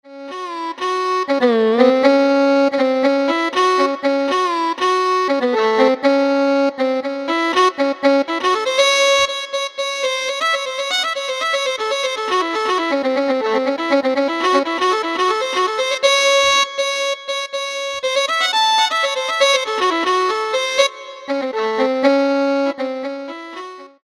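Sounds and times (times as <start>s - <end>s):
violin: 0.0s - 24.0s.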